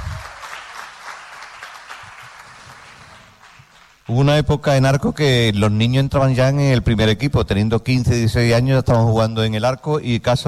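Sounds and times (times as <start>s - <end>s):
audience applause: 0.0s - 4.1s
speech: 4.1s - 10.4s.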